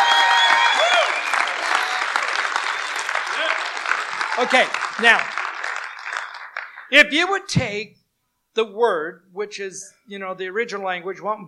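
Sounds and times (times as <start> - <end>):
audience shouting and clapping: 0.0 - 7.0
speech: 4.4 - 5.4, 6.9 - 8.0, 8.6 - 11.4.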